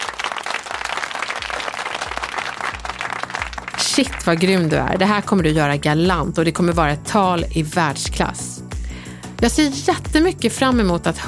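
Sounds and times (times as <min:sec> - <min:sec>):
crowd applauding: 0:00.0 - 0:05.2
speech: 0:04.0 - 0:08.6, 0:09.4 - 0:11.2.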